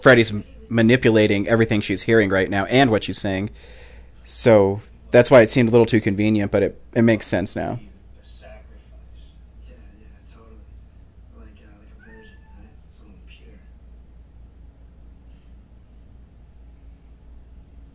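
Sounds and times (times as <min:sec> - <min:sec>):
speech: 0:00.0 - 0:07.9
low hum: 0:00.0 - 0:17.9
cat meowing: 0:12.0 - 0:12.8.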